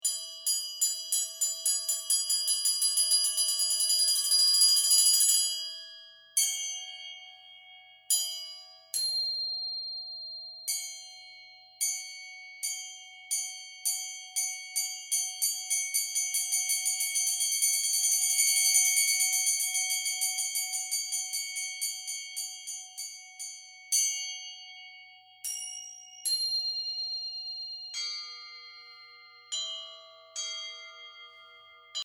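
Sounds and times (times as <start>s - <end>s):
bells: 0.0s - 32.0s.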